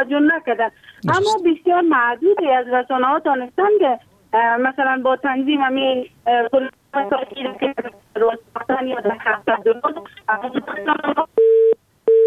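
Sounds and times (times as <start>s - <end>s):
speech: 0.0s - 11.8s
telephone line tone after a phone-in caller's call drops: 11.4s - 12.2s.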